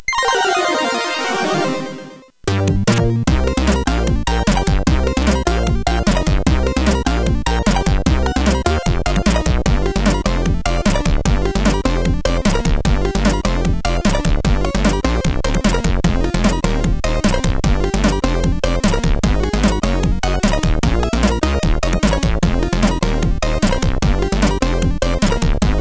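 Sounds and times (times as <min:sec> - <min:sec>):
CSG 8580 sound chip: 0:00.1 - 0:25.7.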